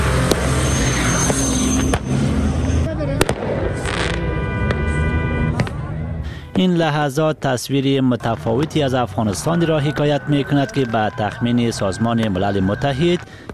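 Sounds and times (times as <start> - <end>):
fireworks at a night gathering: 0.1 - 2.1, 3.1 - 5.8
speech: 6.6 - 13.5.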